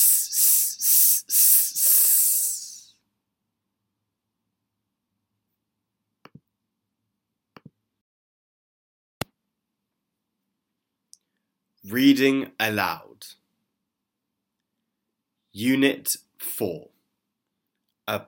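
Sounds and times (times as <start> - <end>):
voice imitating a snake's hiss: 0.0 - 3.0
speech: 11.9 - 13.4, 15.6 - 16.9, 18.1 - 18.2.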